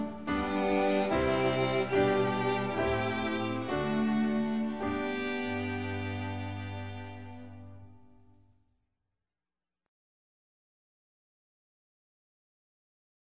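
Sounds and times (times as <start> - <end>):
instrumental hymn: 0.0 - 8.4.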